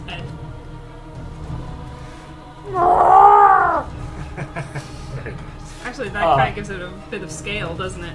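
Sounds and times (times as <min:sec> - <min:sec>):
sea beast screeching: 0:02.7 - 0:04.0
laughter: 0:03.6 - 0:06.7
speech: 0:06.2 - 0:08.1.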